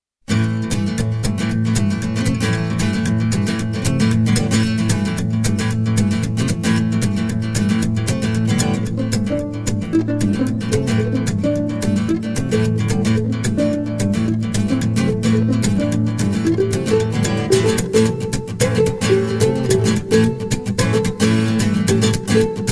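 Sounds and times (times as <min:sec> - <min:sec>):
rhythmic pulse: 0:01.4 - 0:22.7.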